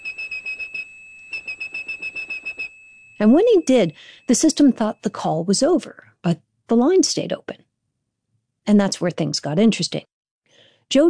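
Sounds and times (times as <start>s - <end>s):
whistled 2600 hertz tone pulses: 0.0s - 5.1s
speech: 3.2s - 7.7s, 8.7s - 10.1s, 10.9s - 11.0s.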